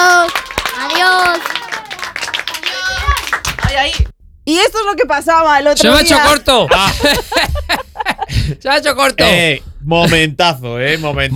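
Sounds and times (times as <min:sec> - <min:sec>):
audience applause: 0:00.0 - 0:04.0
speech: 0:03.9 - 0:07.7, 0:08.6 - 0:11.3
laughter: 0:06.2 - 0:08.6.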